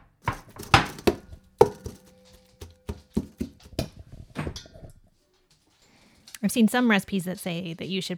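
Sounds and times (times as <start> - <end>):
moss and yogurt being mixed by hand in a bowl: 0.2 - 4.7
speech: 6.4 - 8.1.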